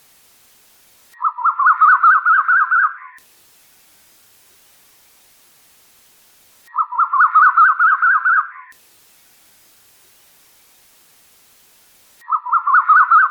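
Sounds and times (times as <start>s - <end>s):
bird singing: 1.2s - 3.2s, 6.7s - 8.7s, 12.2s - 13.2s.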